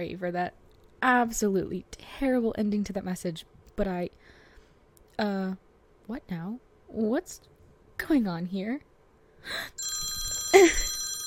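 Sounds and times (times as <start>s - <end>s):
speech: 0.0s - 4.3s, 5.2s - 9.9s, 10.5s - 10.9s
phone ringing with an incoming call: 9.8s - 11.2s.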